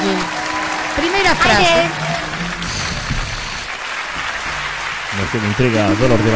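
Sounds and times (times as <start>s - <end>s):
audience applause at a pop concert: 0.0s - 6.3s
speech: 1.0s - 2.1s, 5.2s - 6.3s.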